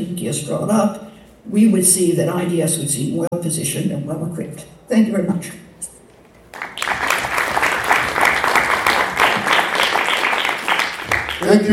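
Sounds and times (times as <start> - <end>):
speech: 0.1 - 5.6, 11.5 - 11.7
audience applause: 6.5 - 11.7.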